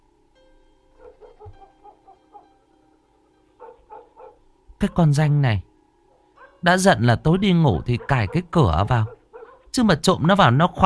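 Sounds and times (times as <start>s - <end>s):
dogs barking in the distance: 1.0s - 5.0s, 6.1s - 6.7s, 7.6s - 9.8s
speech: 4.8s - 5.7s, 6.6s - 9.2s, 9.8s - 10.8s.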